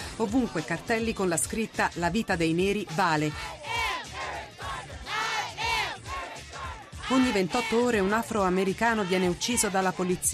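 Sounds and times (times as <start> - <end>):
speech: 0.2 - 3.6, 7.1 - 10.3
protest crowd chanting slogans: 3.0 - 10.3.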